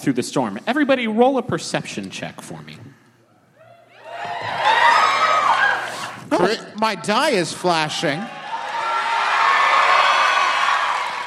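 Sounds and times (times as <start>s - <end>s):
speech: 0.0s - 3.0s, 6.4s - 8.4s
live audience cheering and whooping: 3.6s - 6.3s, 8.1s - 11.2s.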